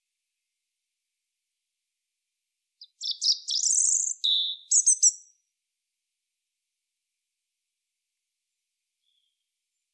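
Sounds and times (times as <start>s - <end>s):
European robin Erithacus rubecula whistling and twittering: 2.8s - 5.4s.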